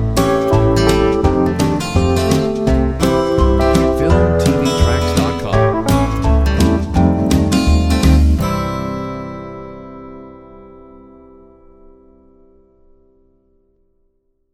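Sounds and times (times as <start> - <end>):
uplifting inspiring royalty-free music: 0.0 - 10.1.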